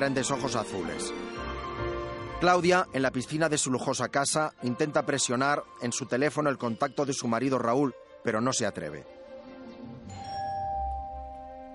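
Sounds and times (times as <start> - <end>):
speech: 0.0 - 9.2
doorbell chime: 10.1 - 11.7.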